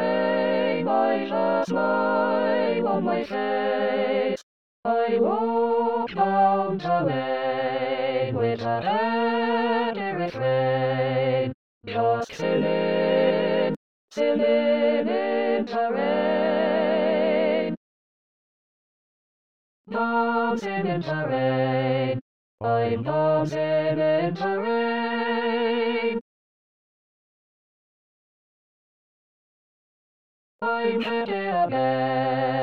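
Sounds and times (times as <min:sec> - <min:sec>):
SATB choir singing in E flat: 0:00.0 - 0:17.8, 0:19.9 - 0:26.2, 0:30.6 - 0:32.6.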